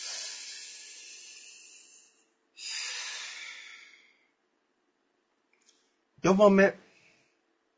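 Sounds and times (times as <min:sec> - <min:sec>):
deep breath inhale and exhale: 0:00.0 - 0:04.4, 0:06.9 - 0:07.4
speech: 0:06.2 - 0:06.8.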